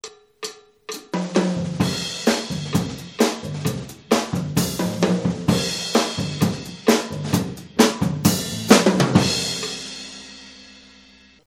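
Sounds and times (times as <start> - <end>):
live band playing at a gig: 1.4 - 10.2.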